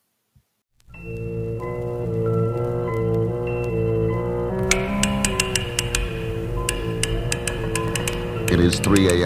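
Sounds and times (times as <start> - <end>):
amplified clicking of lock tumblers: 1.0 - 9.2
speech: 8.7 - 9.2.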